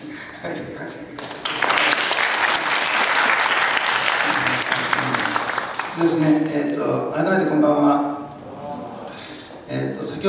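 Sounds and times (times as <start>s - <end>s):
speech: 0.4s - 1.4s, 6.0s - 8.1s, 9.7s - 10.2s
applause in a church after a closing prayer: 1.2s - 6.5s.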